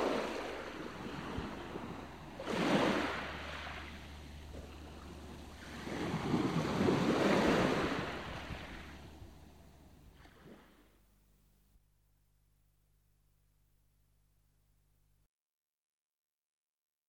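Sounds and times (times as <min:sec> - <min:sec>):
sea surf breaking on a beach: 0:00.0 - 0:10.9.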